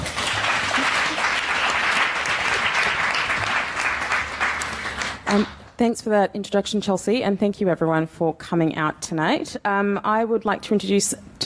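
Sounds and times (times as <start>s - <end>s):
round of applause: 0.0s - 5.6s
speech: 5.3s - 11.4s.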